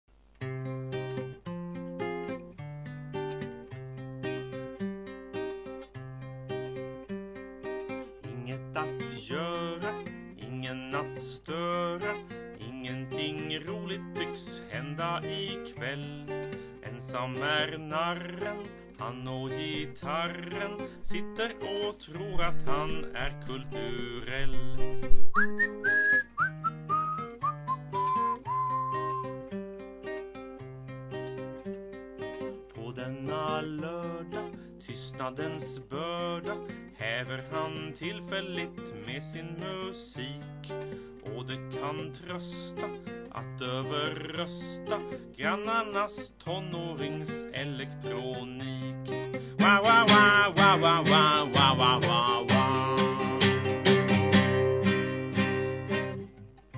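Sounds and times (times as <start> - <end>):
solo guitar: 0.1 - 56.7.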